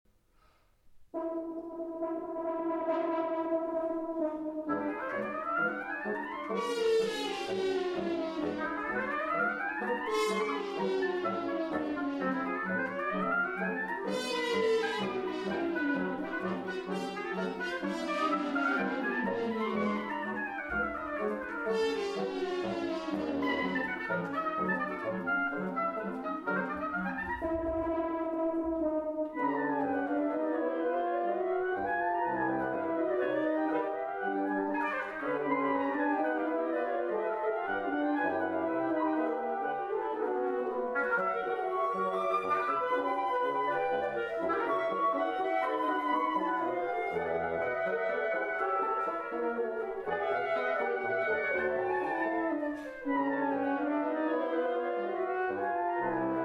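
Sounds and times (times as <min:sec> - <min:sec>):
quintet playing allegro: 0:01.2 - 0:56.4.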